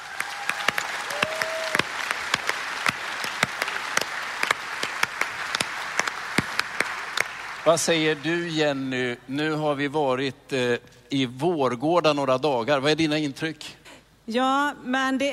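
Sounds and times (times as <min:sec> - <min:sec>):
audience applause: 0:00.0 - 0:08.9
speech: 0:07.6 - 0:15.3.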